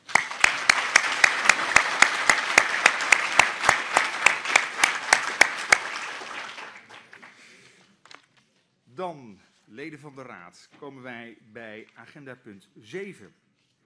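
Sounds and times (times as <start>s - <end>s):
sharp evenly spaced claps: 0.0s - 7.4s
crowd applauding: 0.0s - 7.7s
speech: 9.8s - 13.4s.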